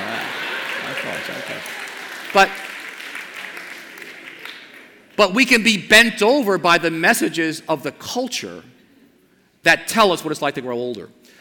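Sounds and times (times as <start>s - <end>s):
audience clapping: 0.0s - 5.2s
speech: 1.0s - 2.7s, 5.2s - 8.8s, 9.6s - 11.3s.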